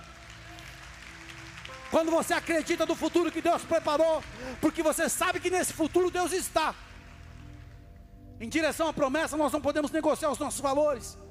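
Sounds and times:
audience applauding: 0.0s - 7.8s
speech: 1.9s - 6.9s, 8.4s - 11.2s.

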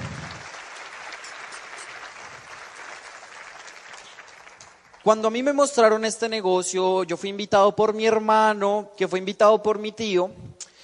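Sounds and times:
audience applause: 0.0s - 5.2s
speech: 5.0s - 10.4s.

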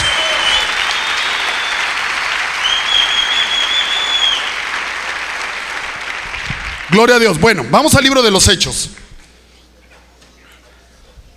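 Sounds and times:
audience applause: 0.0s - 7.3s
speech: 7.0s - 9.0s.

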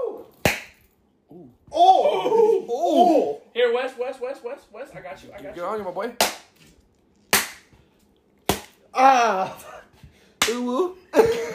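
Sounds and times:
hand slapping raw meat: 0.4s - 0.8s, 7.3s - 7.8s, 8.4s - 8.8s
speech: 1.7s - 2.0s, 2.7s - 6.4s, 8.9s - 9.8s, 10.5s - 11.4s.

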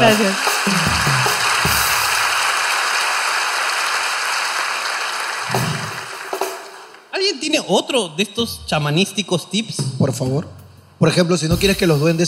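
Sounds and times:
speech: 0.0s - 1.3s, 7.3s - 12.2s
audience applause: 0.0s - 7.1s.

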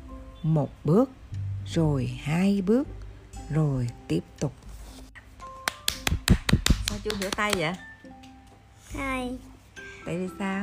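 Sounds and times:
speech: 0.4s - 4.6s, 7.0s - 7.9s, 8.9s - 10.6s
child clapping hands: 5.6s - 8.4s.

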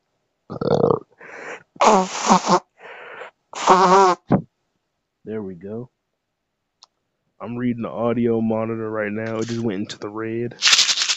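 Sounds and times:
nose blowing: 0.7s - 4.4s, 10.6s - 11.1s
speech: 1.9s - 2.7s, 3.7s - 4.1s, 5.4s - 5.9s, 7.4s - 10.7s.

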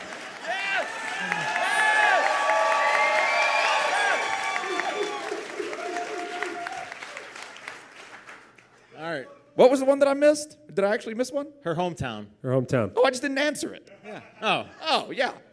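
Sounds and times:
audience applause: 0.0s - 8.7s
speech: 9.6s - 15.4s.

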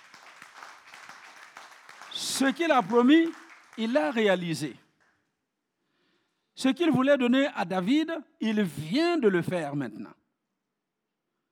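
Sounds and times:
audience applauding: 0.0s - 5.1s
speech: 2.2s - 4.8s, 6.6s - 10.2s.

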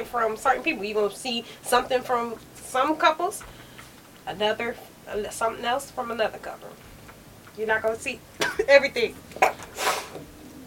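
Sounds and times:
speech: 0.0s - 3.6s, 4.3s - 6.8s, 7.6s - 10.2s
sneeze: 9.4s - 10.2s.

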